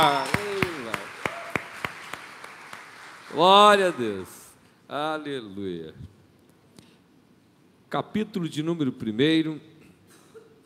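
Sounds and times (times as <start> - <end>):
audience clapping: 0.0 - 4.6
speech: 3.3 - 6.1, 7.9 - 9.7.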